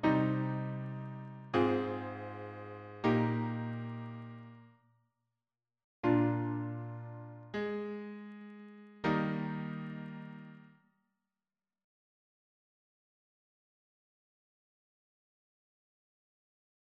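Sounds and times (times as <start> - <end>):
piano harmony: 0.0 - 4.7, 6.0 - 10.7.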